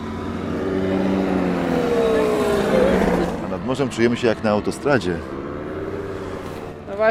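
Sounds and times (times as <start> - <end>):
paramotor engine flying overhead: 0.0 - 7.0
speech: 3.7 - 5.4.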